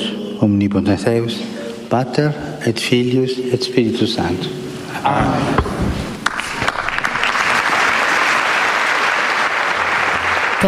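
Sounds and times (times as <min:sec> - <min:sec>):
speech: 0:00.4 - 0:05.9
crowd applause closing Pope Francis's general audience: 0:06.2 - 0:10.6.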